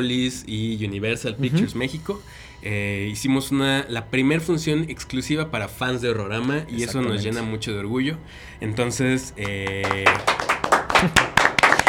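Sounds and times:
laughter: 0.0 - 2.8, 4.0 - 11.8
speech: 0.0 - 10.4, 11.0 - 11.3
applause: 9.4 - 11.8.

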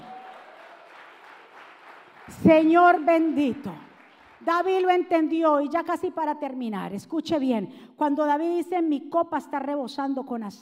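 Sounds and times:
audience applause: 0.0 - 4.4
speech: 2.3 - 3.8, 4.4 - 10.5.

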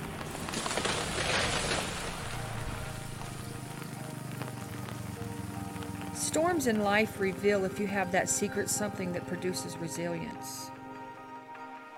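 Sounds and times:
heavy typhoon rain pouring: 0.0 - 9.4
speech: 6.3 - 10.8.

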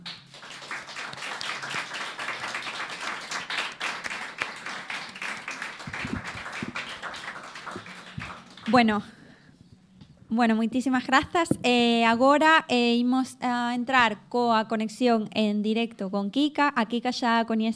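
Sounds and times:
crowd applauding: 0.0 - 9.2
speech: 8.7 - 9.2, 10.4 - 17.7.

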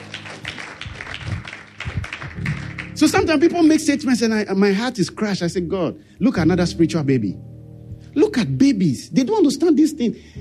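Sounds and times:
audience clapping hands: 0.0 - 3.4
speech: 3.0 - 7.5, 8.2 - 10.3.

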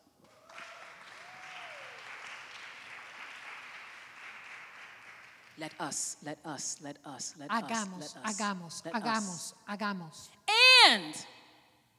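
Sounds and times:
audience applause: 0.0 - 5.8
speech: 5.6 - 11.3.

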